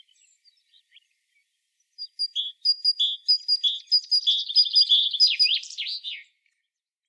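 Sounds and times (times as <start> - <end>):
great tit calling: 2.0 - 6.2.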